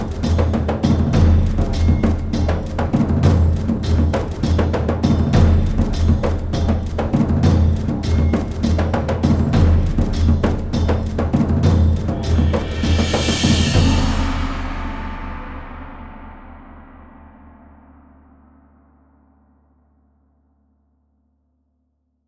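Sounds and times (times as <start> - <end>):
war drums percussion: 0.0 - 17.4.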